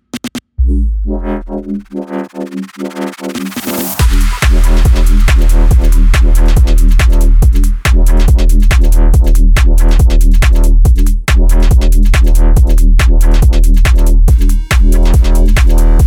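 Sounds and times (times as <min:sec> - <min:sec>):
UK bassline music: 0:00.0 - 0:16.0.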